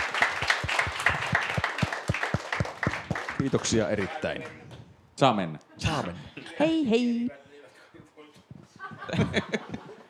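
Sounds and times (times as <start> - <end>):
applause: 0.0 - 4.6
speech: 3.4 - 4.6, 5.2 - 7.4, 9.1 - 9.8
laughter: 8.7 - 10.0.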